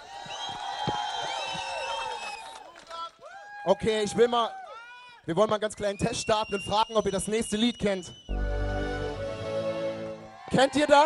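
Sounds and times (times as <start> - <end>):
concert audience applauding and cheering: 0.0 - 4.7, 8.3 - 11.0
speech: 3.6 - 4.6, 5.3 - 8.3, 10.5 - 11.0.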